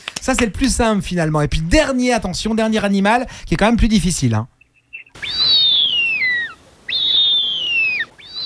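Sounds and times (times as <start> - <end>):
speech: 0.3 - 4.5
bearded vulture high thin whistled call: 4.6 - 8.4.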